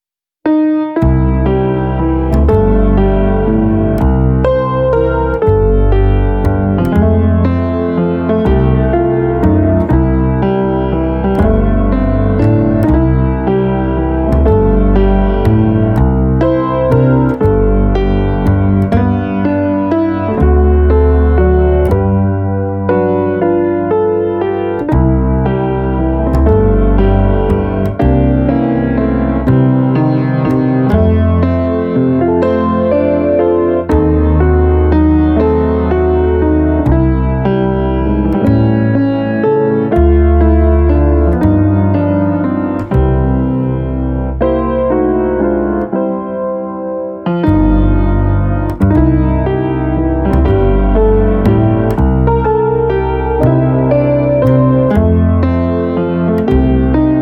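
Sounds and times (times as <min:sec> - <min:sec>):
60 bpm blues waltz: 0:00.5 - 0:57.2.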